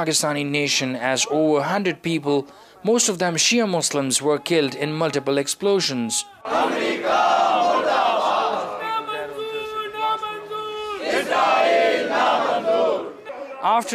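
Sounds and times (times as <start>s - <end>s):
speech: 0.0s - 8.0s, 13.6s - 13.9s
protest crowd shouting: 6.0s - 13.9s.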